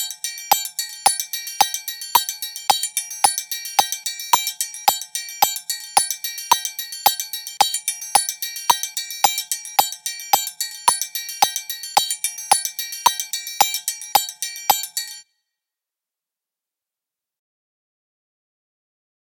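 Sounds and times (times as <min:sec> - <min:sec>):
triangle: 0:00.0 - 0:15.3.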